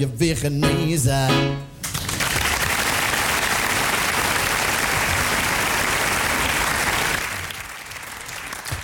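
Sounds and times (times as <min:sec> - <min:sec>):
speech: 0:00.1 - 0:01.7
audience applause: 0:01.8 - 0:08.8.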